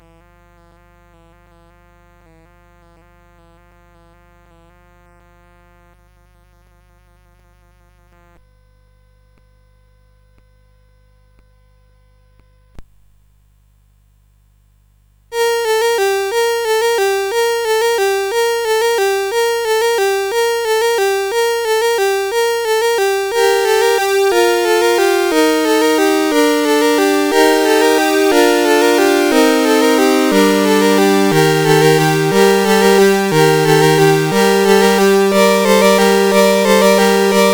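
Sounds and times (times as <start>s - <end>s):
carol on CSG8580R5 sound chip: 15.4s - 37.5s.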